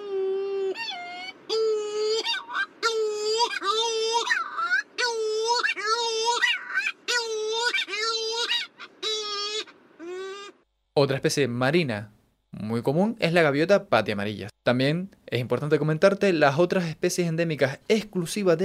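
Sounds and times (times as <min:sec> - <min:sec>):
Cory's shearwater calling in nasal wailing phrases: 0:00.0 - 0:10.6
speech: 0:11.0 - 0:18.6.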